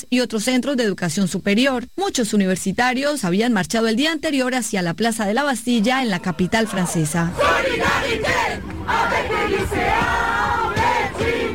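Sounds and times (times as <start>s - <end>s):
speech: 0.0s - 10.3s
university students shouting slogans: 6.2s - 11.5s.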